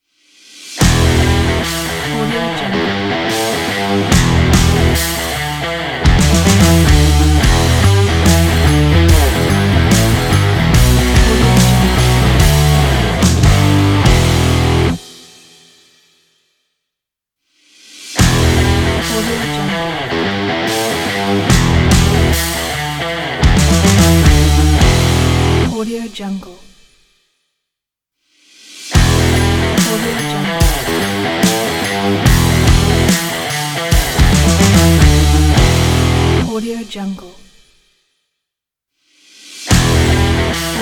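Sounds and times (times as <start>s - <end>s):
energetic rock ident: 0.8s - 15.2s, 18.2s - 25.7s, 28.9s - 36.4s, 39.7s - 40.8s.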